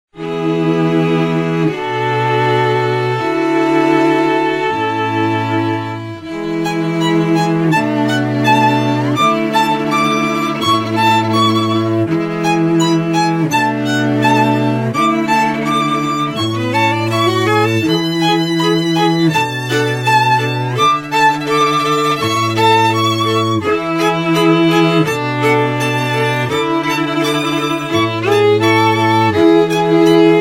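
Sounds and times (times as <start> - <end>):
strings: 0.1 - 30.3.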